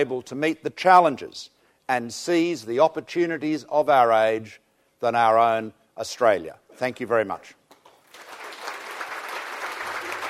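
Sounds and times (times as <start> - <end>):
speech: 0.0 - 7.6
tepid audience clapping after a speech: 7.7 - 10.2.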